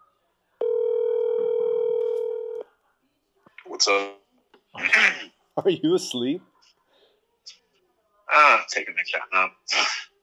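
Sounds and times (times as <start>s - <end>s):
telephone dial tone: 0.6s - 2.6s
speech: 3.8s - 4.2s, 4.8s - 6.5s, 8.3s - 10.0s.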